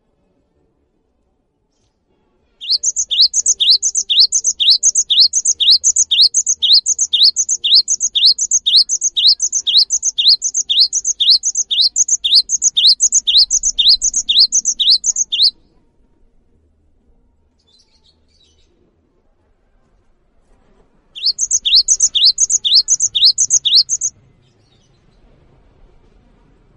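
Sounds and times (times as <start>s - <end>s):
cinereous tit singing: 2.6s - 15.5s, 21.2s - 24.1s.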